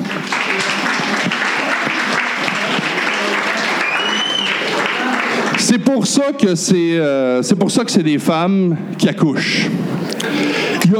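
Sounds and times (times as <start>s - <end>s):
crowd applause: 0.0s - 5.9s, 9.9s - 10.9s
speech: 5.8s - 10.9s.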